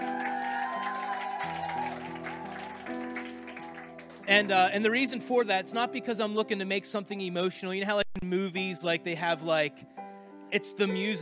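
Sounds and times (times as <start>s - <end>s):
audience clapping for a musician: 0.0s - 4.6s
speech: 4.3s - 9.9s, 10.5s - 11.2s.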